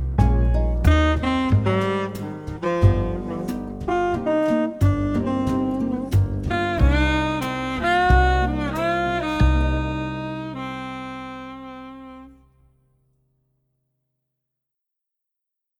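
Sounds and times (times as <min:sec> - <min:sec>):
swing music: 0:00.0 - 0:12.4.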